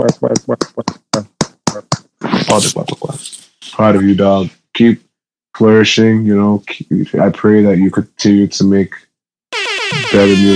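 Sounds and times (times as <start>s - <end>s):
speech: 0.0s - 1.0s, 2.5s - 5.0s, 5.6s - 10.5s
sharp hand claps: 0.0s - 2.1s.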